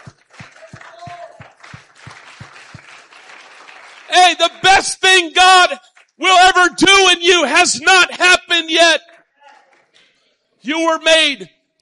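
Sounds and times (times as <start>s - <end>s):
audience clapping hands: 0.0s - 4.9s, 5.6s - 6.2s, 9.1s - 10.2s
speech: 4.2s - 9.1s, 10.6s - 11.6s.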